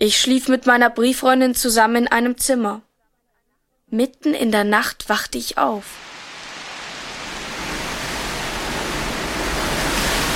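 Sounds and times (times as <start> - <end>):
speech: 0.0 - 2.9, 3.9 - 6.1
storm wind roaring: 5.9 - 10.3.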